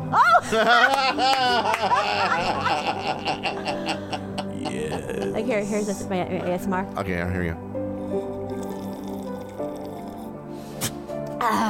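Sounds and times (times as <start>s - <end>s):
speech: 0.1s - 8.3s, 11.4s - 11.6s
laughter: 0.2s - 5.4s
green tea being poured or sipped: 8.4s - 10.3s.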